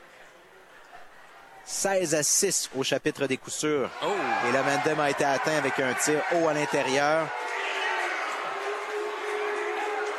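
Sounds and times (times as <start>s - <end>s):
speech: 1.7s - 7.5s
baseball crowd booing: 3.9s - 10.1s.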